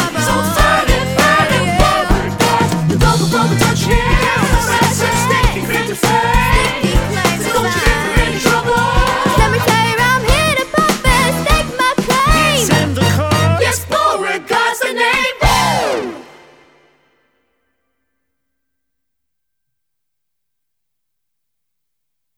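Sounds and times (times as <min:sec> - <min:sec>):
concert backing track music: 0:00.0 - 0:17.0.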